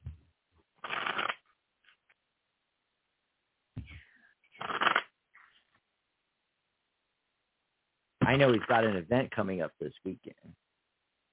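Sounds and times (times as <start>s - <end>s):
tarot cards being shuffled to pull a card: 0.8s - 2.0s, 8.3s - 9.0s
speech: 8.3s - 10.6s.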